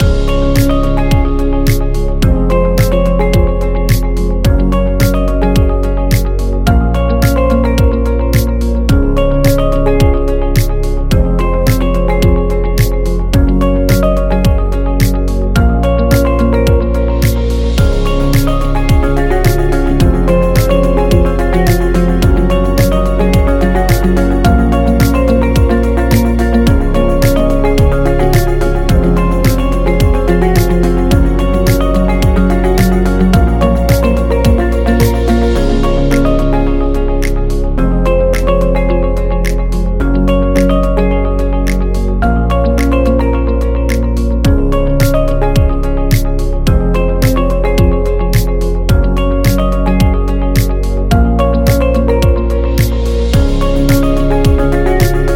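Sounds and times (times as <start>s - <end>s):
upbeat motivational corporate music loop: 0.0s - 55.3s.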